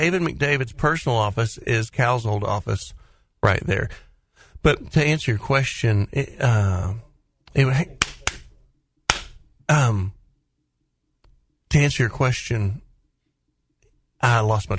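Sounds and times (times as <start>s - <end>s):
speech: 0.0s - 7.0s, 7.6s - 8.0s, 9.7s - 10.2s, 11.7s - 12.8s, 14.2s - 14.7s
sharp hand claps to quiet someone down: 7.9s - 8.5s, 9.1s - 9.4s.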